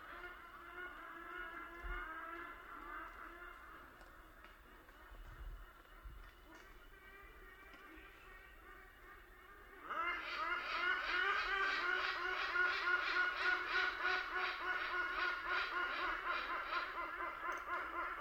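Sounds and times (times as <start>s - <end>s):
hornbills calling in a group chorus in African rainforest in Kenya: 0.0s - 18.1s.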